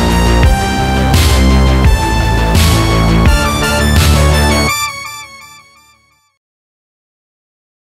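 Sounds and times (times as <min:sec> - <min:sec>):
synthwave music: 0:00.0 - 0:06.4.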